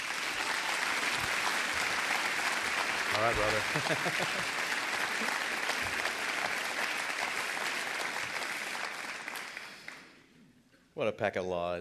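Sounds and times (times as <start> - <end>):
audience applause welcoming a guest speaker at a morning community gathering: 0.0 - 10.2
laughter: 3.1 - 5.5
speech: 3.2 - 4.6, 5.2 - 5.4, 11.0 - 11.7.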